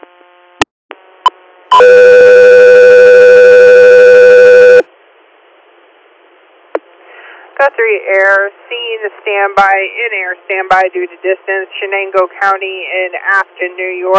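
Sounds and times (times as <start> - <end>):
faint static: 0.0 - 14.1
radio dispatch alert tone: 1.7 - 4.8
speech: 7.8 - 14.1.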